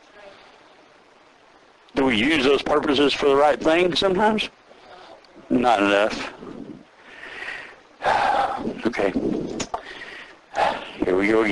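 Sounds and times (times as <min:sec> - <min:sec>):
speech: 0:01.9 - 0:04.6, 0:05.5 - 0:06.4, 0:09.0 - 0:09.3, 0:10.6 - 0:11.4
heavy breathing into the microphone: 0:04.6 - 0:05.5, 0:06.2 - 0:11.1.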